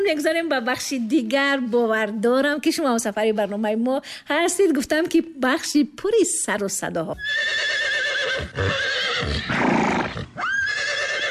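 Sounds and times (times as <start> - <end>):
speech: 0.0 - 9.6
horse neighing: 7.2 - 11.3.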